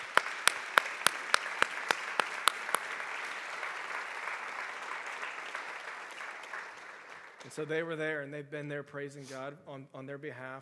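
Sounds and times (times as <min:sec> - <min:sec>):
audience applause: 0:00.0 - 0:07.5
speech: 0:07.5 - 0:10.6.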